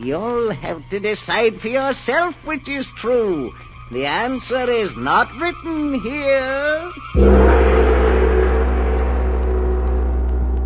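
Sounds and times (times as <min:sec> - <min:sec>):
speech: 0:00.0 - 0:07.9
great gong struck: 0:07.2 - 0:10.6.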